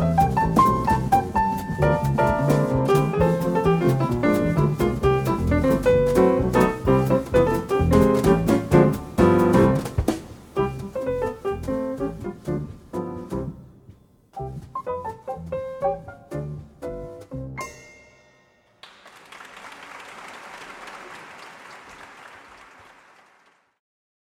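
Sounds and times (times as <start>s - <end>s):
instrumental music: 0.0s - 18.4s.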